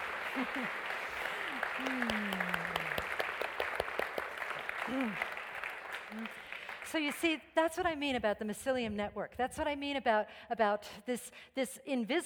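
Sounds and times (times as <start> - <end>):
audience applause: 0.0 - 6.9
speech: 0.4 - 1.0, 1.8 - 2.7, 4.9 - 5.3, 6.1 - 12.2.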